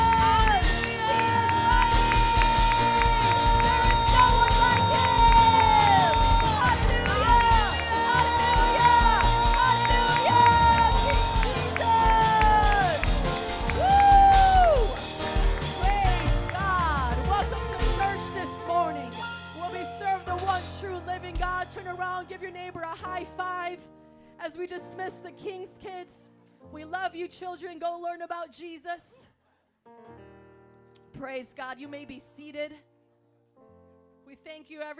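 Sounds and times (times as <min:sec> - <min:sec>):
audience clapping and cheering: 0:00.0 - 0:18.4
dense musical backdrop: 0:00.0 - 0:34.9
speech: 0:27.7 - 0:29.2, 0:31.2 - 0:32.9, 0:34.3 - 0:34.9.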